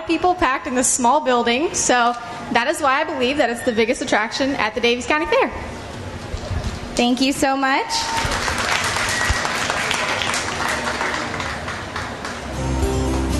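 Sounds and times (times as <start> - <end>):
speech: 0.1 - 5.8, 7.0 - 8.3
audience applause: 8.1 - 13.3.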